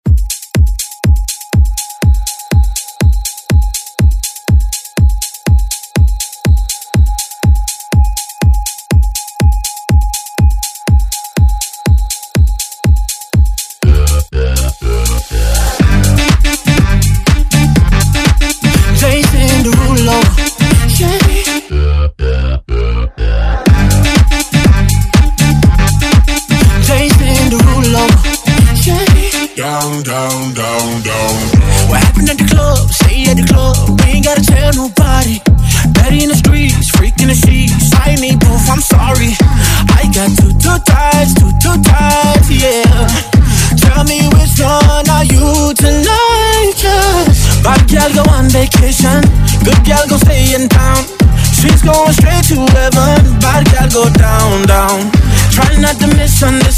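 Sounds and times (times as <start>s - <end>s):
dance music: 0.0s - 56.7s.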